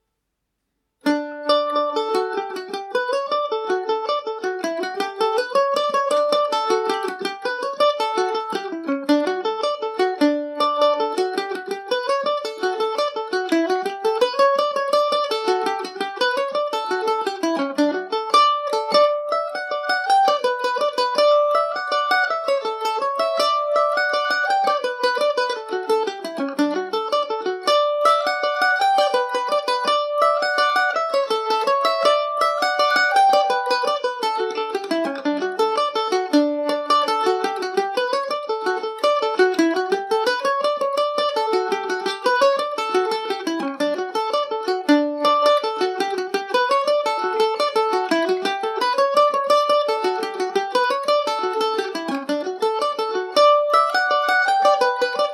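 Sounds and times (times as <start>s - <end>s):
mandolin in D major: 0.9s - 55.3s.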